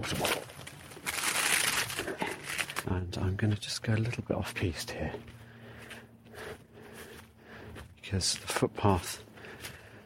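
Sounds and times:
speech: 0:00.0 - 0:00.5, 0:02.8 - 0:05.4, 0:08.1 - 0:09.3
plastic crisp packet being crumpled: 0:00.0 - 0:02.9.

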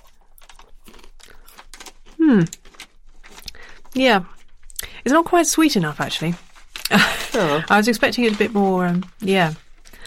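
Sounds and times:
chewing a crunchy toffee-flavoured cricket: 0:00.0 - 0:04.9
speech: 0:02.3 - 0:02.6, 0:04.0 - 0:04.4, 0:05.0 - 0:09.6
laughter: 0:06.9 - 0:07.7.

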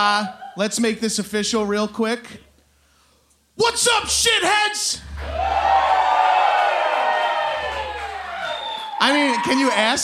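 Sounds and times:
speech: 0:00.0 - 0:02.5, 0:03.6 - 0:05.8, 0:09.0 - 0:10.0
live audience clapping: 0:05.1 - 0:09.7.

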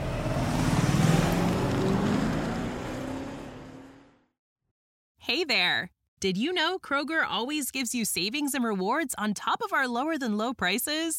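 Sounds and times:
wind and tire noise: 0:00.0 - 0:04.1
car engine accelerating to pass a truck: 0:00.0 - 0:04.3
speech: 0:05.3 - 0:11.1.

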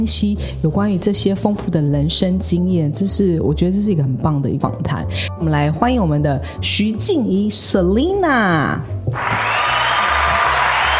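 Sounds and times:
speech: 0:00.0 - 0:09.8
audience applause and cheering: 0:09.2 - 0:10.9.

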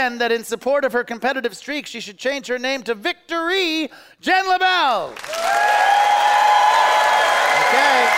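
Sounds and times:
speech: 0:00.0 - 0:06.3
audience applause: 0:05.1 - 0:08.1.

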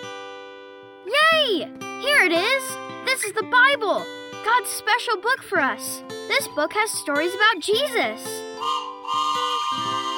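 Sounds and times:
speech: 0:01.6 - 0:08.8
train whistle: 0:08.6 - 0:10.1.

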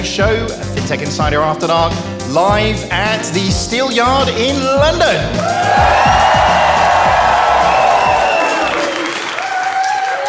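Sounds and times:
speech: 0:00.0 - 0:06.4
live crowd applauding and cheering: 0:05.3 - 0:10.2.

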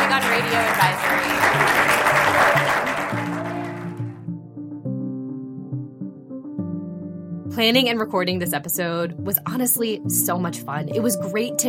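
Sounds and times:
audience applause: 0:00.0 - 0:04.3
melodic music track with sustained notes: 0:00.0 - 0:11.6
speech: 0:00.1 - 0:01.8, 0:07.6 - 0:11.6.

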